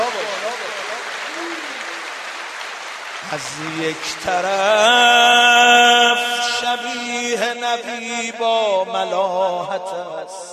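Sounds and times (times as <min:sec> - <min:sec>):
hand clapping: 0:00.0 - 0:06.7
speech: 0:03.3 - 0:10.5.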